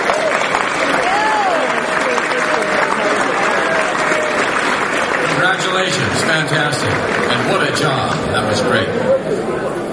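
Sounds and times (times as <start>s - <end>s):
audience applause: 0.0s - 9.0s
speech: 6.4s - 9.0s.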